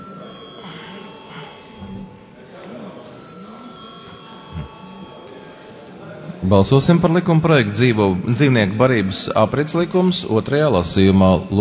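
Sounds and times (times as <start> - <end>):
parliamentary session bell ringing: 0.0 - 7.6
speech: 6.4 - 11.5.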